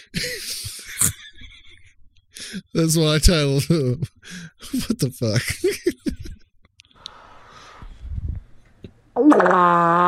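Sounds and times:
speech: 0.0s - 0.6s, 2.6s - 6.0s, 9.4s - 10.0s
laughter: 0.0s - 6.4s
fart: 9.2s - 10.0s.

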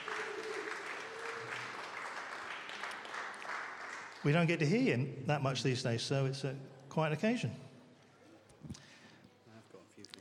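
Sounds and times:
audience applause: 0.0s - 4.7s
speech: 4.2s - 7.6s.

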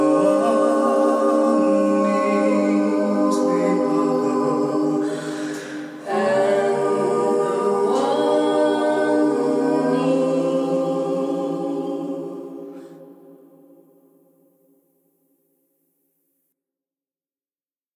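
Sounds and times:
a cappella singing: 0.0s - 13.8s.

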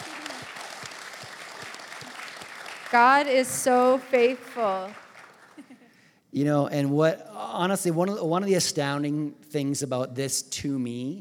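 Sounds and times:
audience applause: 0.0s - 5.8s
speech: 2.9s - 5.0s, 6.4s - 11.1s.

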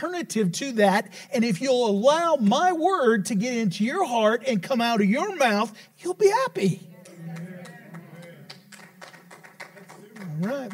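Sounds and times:
speech: 0.0s - 6.9s, 10.4s - 10.7s
low murmur of voices: 6.6s - 10.7s
light scattered golf clapping from small crowd: 7.0s - 10.7s.

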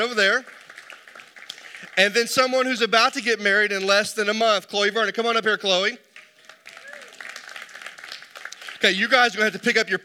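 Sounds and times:
speech: 0.0s - 0.6s, 1.9s - 6.0s, 8.8s - 10.0s
crowd applauding: 0.0s - 2.8s, 6.1s - 10.0s.

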